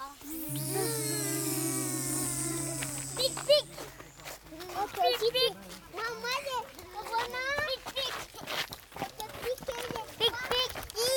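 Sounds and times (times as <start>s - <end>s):
children imitating a bee's buzz: 0.0s - 5.1s
child voices: 0.0s - 7.8s, 9.6s - 11.1s.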